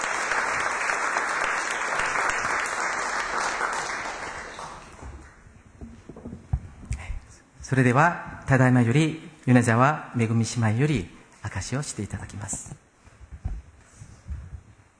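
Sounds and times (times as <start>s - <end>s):
audience applause: 0.0s - 5.2s
speech: 7.7s - 12.8s.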